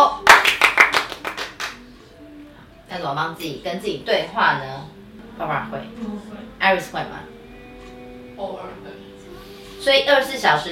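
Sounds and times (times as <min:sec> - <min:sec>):
hand clapping: 0:00.2 - 0:01.9
speech: 0:03.0 - 0:07.4, 0:08.4 - 0:09.1, 0:09.8 - 0:10.7.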